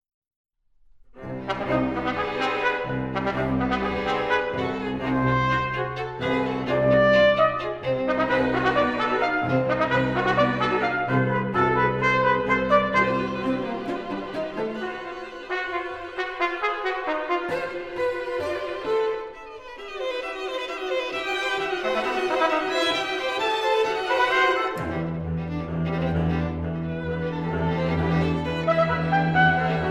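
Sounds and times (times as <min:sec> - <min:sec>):
quintet for trumpet and strings playing allegro agitato: 0:01.2 - 0:29.9.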